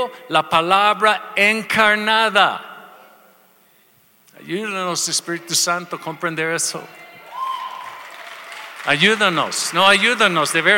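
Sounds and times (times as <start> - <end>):
speech: 0.0 - 2.7, 4.4 - 7.0, 8.8 - 10.7
audience applause: 7.2 - 10.7.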